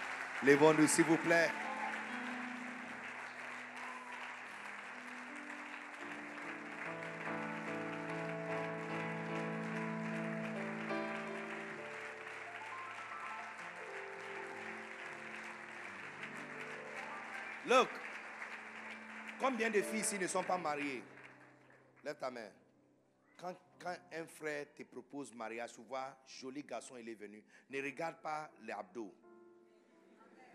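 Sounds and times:
crowd applauding: 0:00.0 - 0:22.3
speech: 0:00.4 - 0:01.6, 0:19.6 - 0:21.2, 0:22.0 - 0:22.6, 0:23.4 - 0:29.2.

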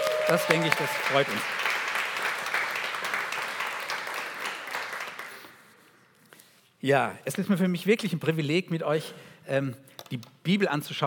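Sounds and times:
audience applause: 0:00.0 - 0:05.6
speech: 0:00.3 - 0:01.7, 0:06.8 - 0:11.0.

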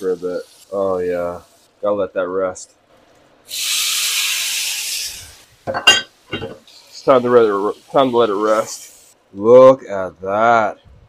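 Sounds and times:
ribeye steak sizzling and bubbling in a pan: 0:00.0 - 0:01.7, 0:03.5 - 0:09.2
speech: 0:00.0 - 0:02.8, 0:03.4 - 0:03.8, 0:05.6 - 0:10.9.

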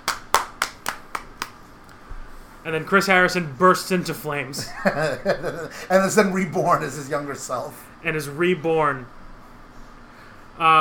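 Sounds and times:
hands clapping: 0:00.0 - 0:01.6
speech: 0:02.6 - 0:09.2, 0:10.6 - 0:10.8
laughter: 0:04.6 - 0:06.0.

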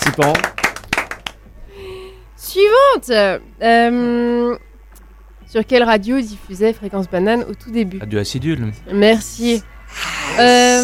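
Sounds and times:
speech: 0:00.0 - 0:00.5, 0:02.5 - 0:04.6, 0:05.5 - 0:10.8
audience applause: 0:00.0 - 0:01.4.

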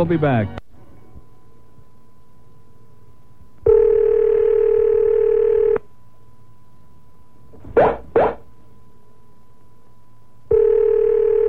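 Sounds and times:
speech: 0:00.0 - 0:00.6
telephone line tone: 0:03.6 - 0:05.9, 0:10.5 - 0:11.4.

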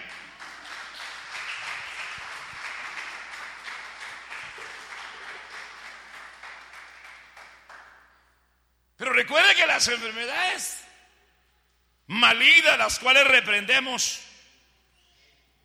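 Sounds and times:
audience applause: 0:00.0 - 0:08.0
speech: 0:09.1 - 0:10.8, 0:12.1 - 0:14.3.

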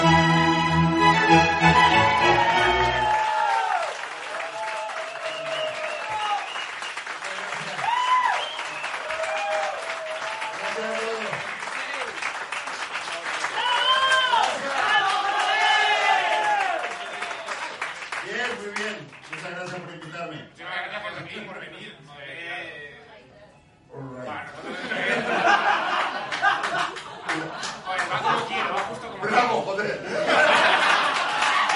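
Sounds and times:
audience cheering: 0:00.1 - 0:18.0, 0:30.4 - 0:31.7
audience applause: 0:01.0 - 0:20.1, 0:25.2 - 0:29.0, 0:30.3 - 0:31.7
laughter: 0:24.6 - 0:29.0, 0:29.8 - 0:31.7.

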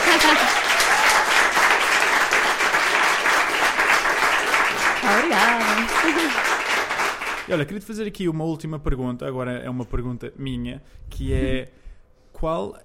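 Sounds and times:
laughter: 0:00.0 - 0:00.8
audience applauding: 0:00.0 - 0:07.6
speech: 0:07.5 - 0:12.8.

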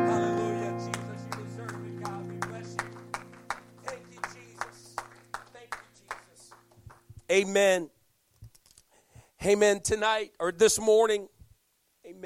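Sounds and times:
audience clapping hands: 0:00.4 - 0:07.2
speech: 0:07.3 - 0:08.0, 0:09.4 - 0:11.3.

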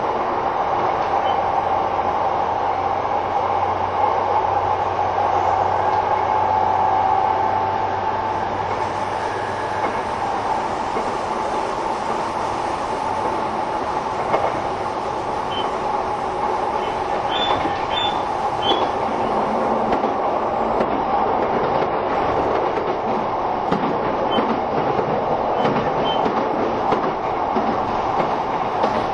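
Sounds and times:
moving train carriage rumble and rushing hiss: 0:00.0 - 0:29.1
light clicks and squeaks: 0:25.6 - 0:26.4.

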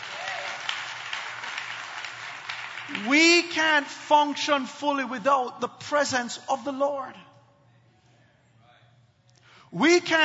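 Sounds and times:
audience clapping hands: 0:00.0 - 0:03.8
speech: 0:02.9 - 0:07.3, 0:09.7 - 0:10.2.

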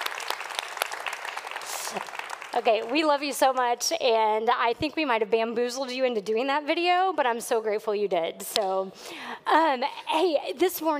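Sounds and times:
audience applause: 0:00.0 - 0:03.2
speech: 0:01.9 - 0:10.9.

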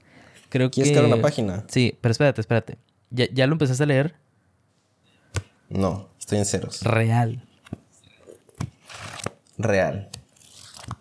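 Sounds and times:
speech: 0:00.5 - 0:04.2, 0:05.3 - 0:07.5, 0:09.0 - 0:10.2
plastic wrapping tearing and crinkling: 0:08.8 - 0:11.0.

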